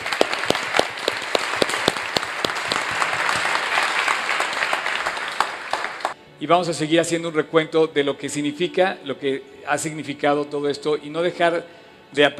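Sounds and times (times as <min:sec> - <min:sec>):
audience applause: 0:00.0 - 0:06.2
speech: 0:06.4 - 0:12.3.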